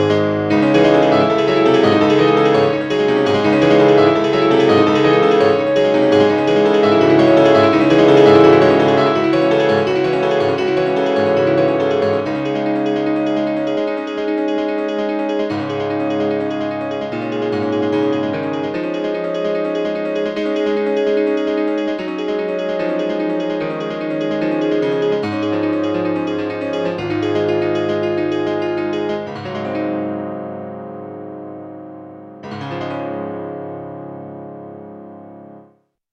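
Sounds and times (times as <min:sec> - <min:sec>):
rock music on grand piano: 0:00.0 - 0:35.7.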